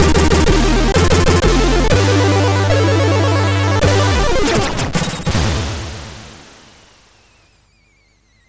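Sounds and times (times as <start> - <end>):
MOS6581R4 SID chip intro music: 0.0 - 5.1.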